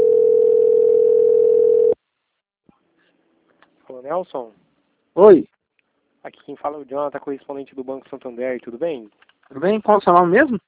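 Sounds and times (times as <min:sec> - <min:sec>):
telephone call tone: 0:00.0 - 0:02.0
speech: 0:04.1 - 0:04.6, 0:05.2 - 0:05.6, 0:06.2 - 0:10.6.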